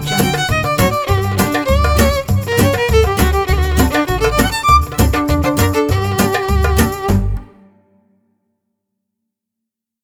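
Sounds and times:
Jewish violin: 0.0 - 8.0.

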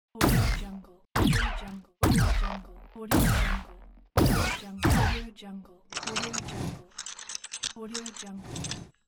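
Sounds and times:
laser gun: 0.2 - 5.3.

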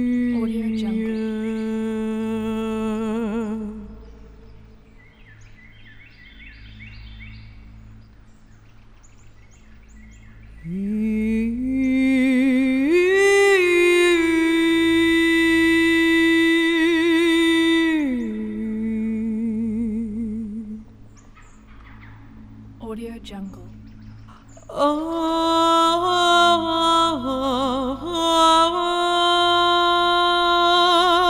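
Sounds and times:
shamanic woman chanting in the forest: 0.0 - 4.6, 10.6 - 20.9, 22.8 - 31.2.

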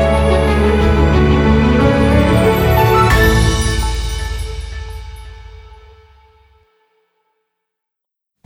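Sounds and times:
epic action news intro music: 0.0 - 6.6.

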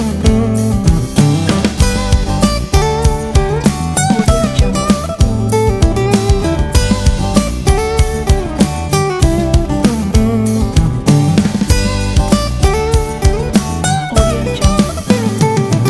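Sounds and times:
uplifting acoustic pop music: 0.0 - 15.8.

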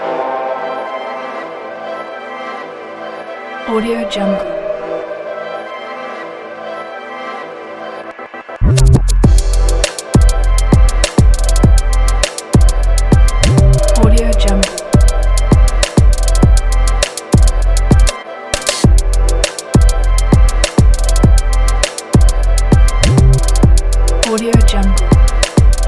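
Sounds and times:
trap beat: 8.6 - 25.8.

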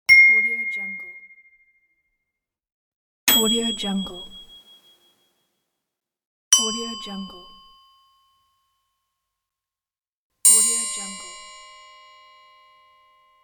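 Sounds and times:
ding sounds: 0.1 - 1.8, 3.3 - 5.2, 6.6 - 8.5, 10.5 - 13.4.

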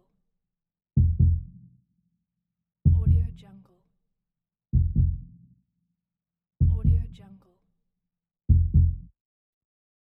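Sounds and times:
heartbeat: 1.0 - 1.5, 2.9 - 3.4, 4.8 - 5.3, 6.6 - 7.2, 8.5 - 9.1.

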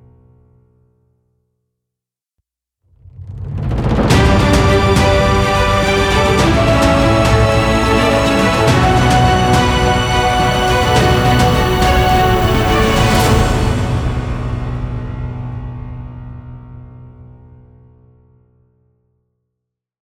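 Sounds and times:
uplifting epic logo music: 4.0 - 15.8.

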